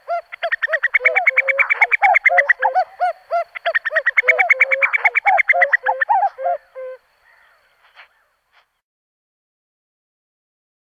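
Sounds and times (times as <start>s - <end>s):
Common cuckoo calling: 0.0s - 8.8s.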